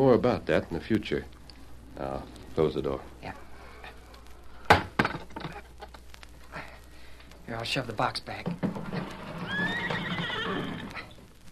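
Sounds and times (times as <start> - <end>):
speech: 0.0 - 1.4, 2.0 - 3.4, 7.5 - 8.8
horse whinnying: 8.8 - 11.2.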